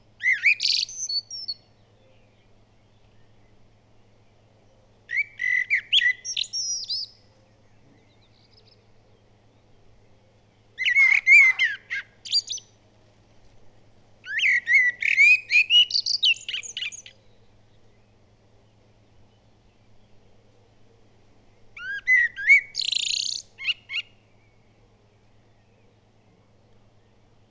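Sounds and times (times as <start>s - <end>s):
background hum: 0.0s - 27.4s
common blackbird song: 0.0s - 27.4s.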